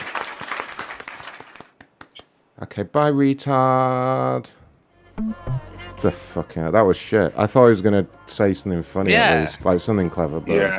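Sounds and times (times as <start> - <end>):
small group applauding: 0.0 - 2.3
speech: 2.6 - 4.6, 5.2 - 10.7.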